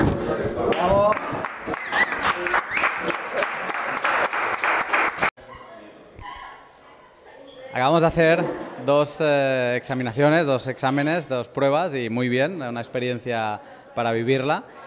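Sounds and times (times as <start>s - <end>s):
audience applause: 0.6s - 5.3s
speech: 8.0s - 14.8s.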